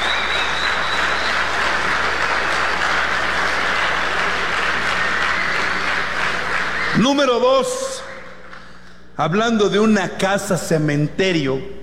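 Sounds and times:
faint high whistle-like tone: 0:00.0 - 0:01.4
crowd applauding: 0:00.0 - 0:07.4
speech: 0:07.0 - 0:07.8, 0:09.2 - 0:11.8.

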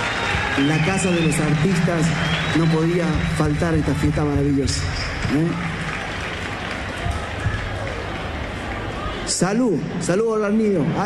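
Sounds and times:
audience applause: 0:00.0 - 0:09.3
speech: 0:00.6 - 0:05.7, 0:09.4 - 0:11.0.

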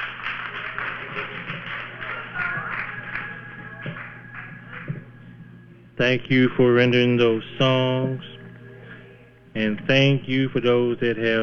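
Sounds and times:
audience hand clapping: 0:00.0 - 0:05.4
low electrical hum: 0:00.0 - 0:11.4
speech: 0:06.0 - 0:08.3, 0:09.6 - 0:11.4.

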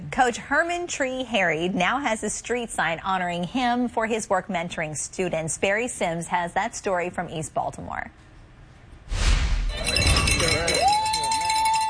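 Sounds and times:
speech: 0:00.2 - 0:08.2
bells ringing: 0:09.7 - 0:11.8.

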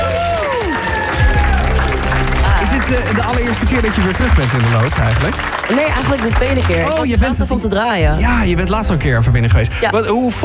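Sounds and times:
audience whooping: 0:00.0 - 0:07.0
audience applause for a returning former contestant: 0:00.0 - 0:07.3
speech: 0:03.3 - 0:10.4.

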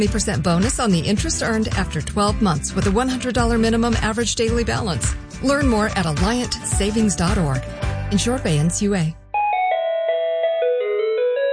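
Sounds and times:
speech: 0:00.0 - 0:09.2
ice cream truck chime playing a tinny electronic tune: 0:09.3 - 0:11.5.

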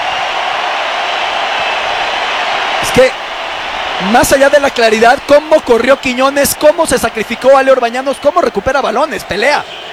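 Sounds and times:
stadium crowd ovation: 0:00.0 - 0:09.9
speech: 0:02.9 - 0:03.2, 0:04.0 - 0:09.9.

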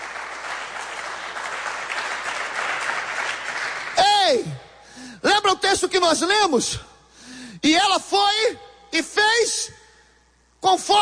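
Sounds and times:
audience applause: 0:00.0 - 0:04.0
speech: 0:04.3 - 0:04.6, 0:05.6 - 0:06.9, 0:07.6 - 0:09.8, 0:10.6 - 0:11.0.

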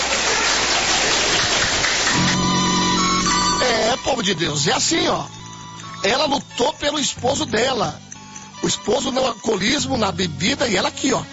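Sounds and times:
audience clapping hands in applause: 0:00.0 - 0:04.0
speech: 0:04.0 - 0:05.4, 0:06.0 - 0:11.3.

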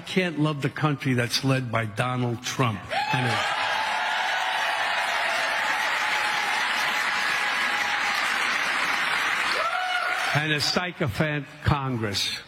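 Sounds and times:
speech: 0:00.1 - 0:03.6, 0:10.3 - 0:12.4
crowd applauding: 0:03.0 - 0:10.6.

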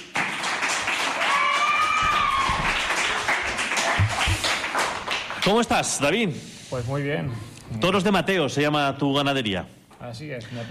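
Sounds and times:
audience applause: 0:00.0 - 0:05.7
speech: 0:05.4 - 0:10.7.

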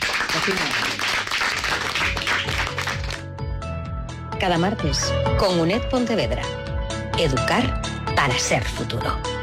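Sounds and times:
audience applause: 0:00.0 - 0:03.2
speech: 0:00.4 - 0:01.0, 0:04.4 - 0:06.6, 0:07.2 - 0:09.3.

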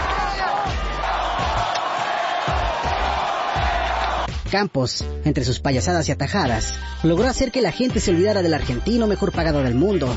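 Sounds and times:
stadium crowd ovation: 0:00.0 - 0:04.3
speech: 0:04.5 - 0:10.1.

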